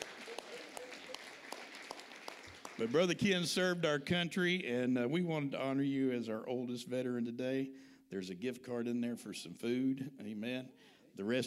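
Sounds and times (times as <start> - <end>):
audience applause: 0.0 - 3.2
speech: 2.8 - 11.4.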